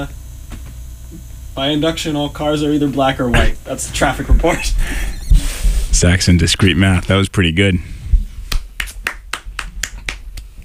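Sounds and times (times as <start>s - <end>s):
speech: 1.1s - 5.2s, 6.0s - 7.9s
single person clapping slowly: 8.5s - 10.5s.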